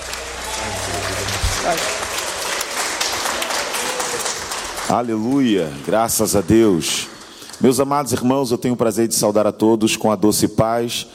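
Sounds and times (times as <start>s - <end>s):
audience applauding: 0.0s - 8.3s
speech: 1.6s - 2.0s, 4.9s - 11.1s.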